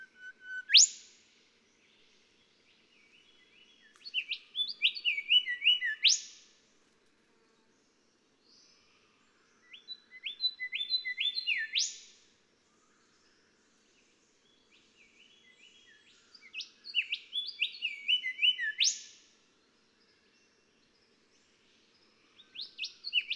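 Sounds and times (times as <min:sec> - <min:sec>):
golden whistler singing: 0:00.0 - 0:01.2, 0:03.8 - 0:06.4, 0:09.6 - 0:12.1, 0:14.7 - 0:19.2, 0:22.5 - 0:23.3.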